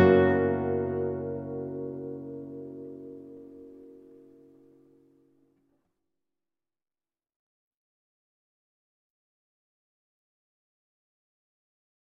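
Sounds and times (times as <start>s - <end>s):
guitar playing a slow largo: 0.0s - 5.2s.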